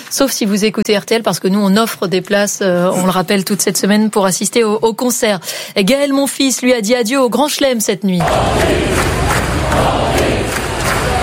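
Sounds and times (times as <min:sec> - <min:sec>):
speech: 0:00.1 - 0:10.2
tennis crowd at a night match at the US Open chanting: 0:08.2 - 0:11.2.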